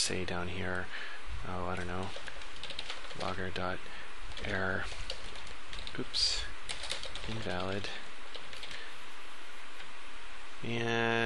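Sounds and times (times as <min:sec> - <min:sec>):
speech: 0:00.1 - 0:02.4, 0:03.1 - 0:05.1, 0:05.9 - 0:06.5, 0:07.2 - 0:08.0, 0:10.6 - 0:11.2
typing on a computer keyboard: 0:01.8 - 0:03.4, 0:04.3 - 0:06.1, 0:06.7 - 0:08.8.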